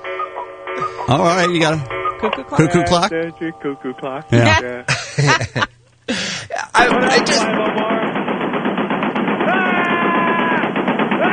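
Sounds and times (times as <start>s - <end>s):
speech: 0.8s - 5.8s, 6.8s - 7.7s
laughter: 4.4s - 5.8s
big gun firing: 6.9s - 11.3s.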